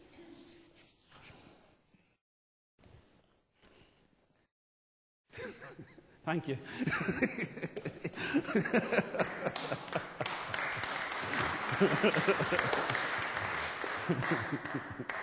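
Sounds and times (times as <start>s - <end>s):
laughter: 5.4s - 15.2s
speech: 5.8s - 7.7s, 8.3s - 9.4s, 11.8s - 13.2s, 14.1s - 15.2s
audience clapping: 7.8s - 15.2s.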